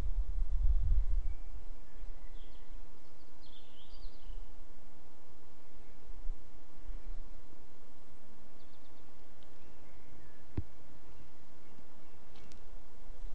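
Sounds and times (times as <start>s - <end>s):
blackbirds singing at dusk: 0.7s - 4.6s, 8.1s - 13.3s.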